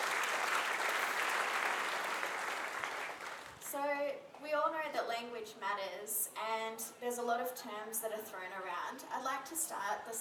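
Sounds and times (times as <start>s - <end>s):
audience applause: 0.0s - 3.6s
speech: 4.1s - 10.1s.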